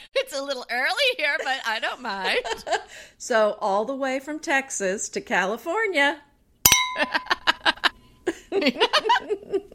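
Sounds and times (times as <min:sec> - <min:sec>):
speech: 0:00.0 - 0:06.3, 0:06.9 - 0:07.4, 0:08.5 - 0:09.7
champagne glasses clinking in a toast: 0:06.7 - 0:07.5
people laughing and giggling: 0:07.7 - 0:09.7.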